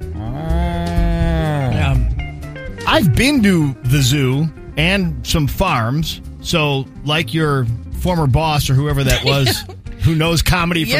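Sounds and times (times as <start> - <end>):
cow named Bessie mooing while being ridden: 0.1 - 2.1
speech: 3.0 - 10.9
laughter: 9.0 - 9.8.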